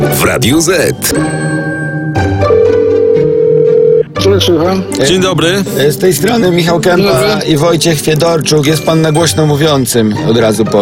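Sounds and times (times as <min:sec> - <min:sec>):
speech: 0:00.1 - 0:01.5, 0:04.4 - 0:10.8
telephone ringing on outgoing call: 0:02.4 - 0:04.1.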